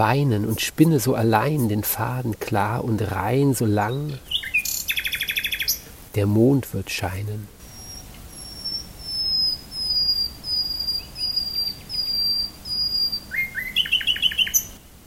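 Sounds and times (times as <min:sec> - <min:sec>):
speech: 0:00.0 - 0:04.4, 0:06.1 - 0:07.6
nightingale singing: 0:02.8 - 0:05.9, 0:07.6 - 0:14.8.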